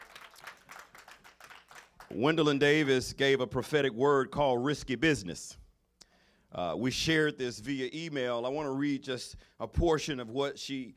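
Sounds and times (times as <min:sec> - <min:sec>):
audience clapping: 0:00.0 - 0:02.6
speech: 0:02.1 - 0:05.6, 0:06.5 - 0:10.9.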